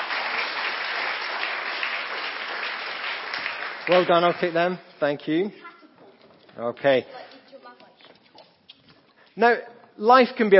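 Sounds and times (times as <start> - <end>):
audience applause: 0.0 - 4.8
speech: 3.9 - 5.7, 6.6 - 7.3, 9.4 - 10.5.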